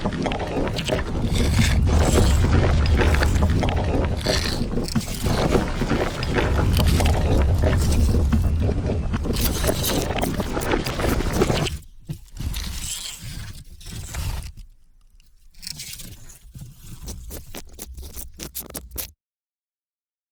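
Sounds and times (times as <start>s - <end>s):
stones and rocks scraping: 0.0s - 19.1s.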